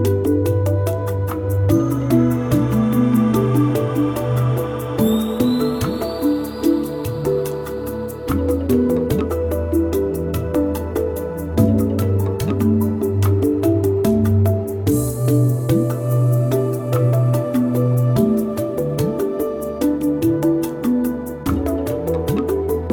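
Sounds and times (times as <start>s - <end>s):
African djembe drum beats: 0.0s - 22.9s.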